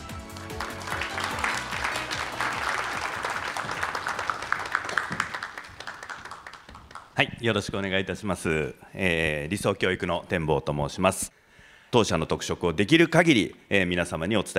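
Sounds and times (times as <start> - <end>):
audience applause: 0.0 - 7.2
speech: 7.2 - 14.5.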